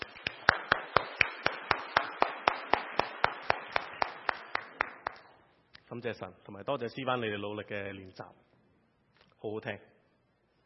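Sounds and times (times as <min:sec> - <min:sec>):
audience applause: 0:00.0 - 0:05.2
speech: 0:05.9 - 0:08.5, 0:09.4 - 0:09.9.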